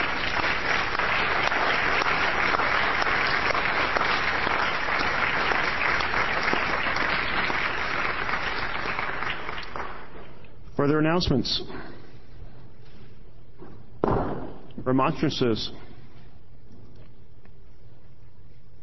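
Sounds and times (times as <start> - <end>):
round of applause: 0.0 - 10.2
speech: 10.8 - 11.9, 14.9 - 15.8.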